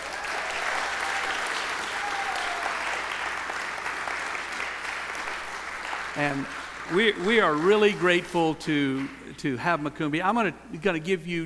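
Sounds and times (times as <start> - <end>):
audience applause: 0.0 - 8.3
speech: 6.2 - 11.4.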